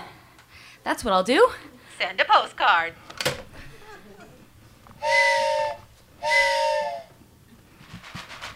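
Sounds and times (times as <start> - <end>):
speech: 1.0 - 3.0
laughter: 3.5 - 4.7
train whistle blasts: 5.0 - 7.2.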